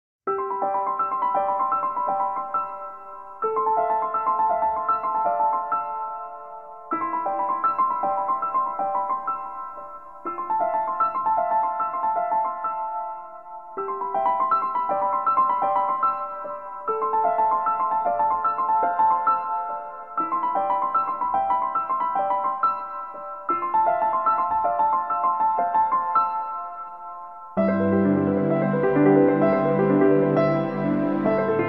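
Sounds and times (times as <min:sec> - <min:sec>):
piano house music: 0:00.3 - 0:31.6.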